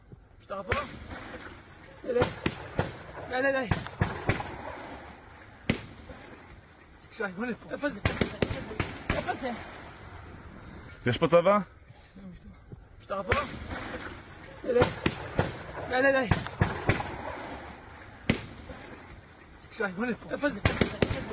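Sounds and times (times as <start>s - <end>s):
speech: 0.5s - 4.4s, 7.2s - 9.8s, 11.0s - 13.9s, 14.6s - 15.1s, 15.9s - 16.5s, 19.8s - 21.0s
gunfire in a settlement: 0.7s - 6.6s, 7.7s - 10.2s, 13.3s - 19.4s, 20.2s - 21.3s.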